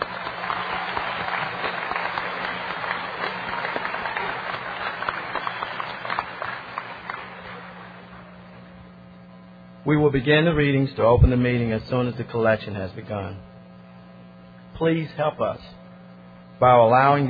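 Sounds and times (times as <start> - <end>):
audience applause: 0.0 - 8.6
speech: 9.9 - 13.5, 14.8 - 15.8, 16.6 - 17.2.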